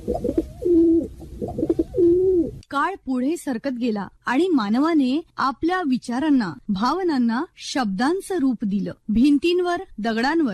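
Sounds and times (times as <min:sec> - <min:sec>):
pigeon cooing: 0:00.0 - 0:02.6
speech: 0:02.8 - 0:10.5.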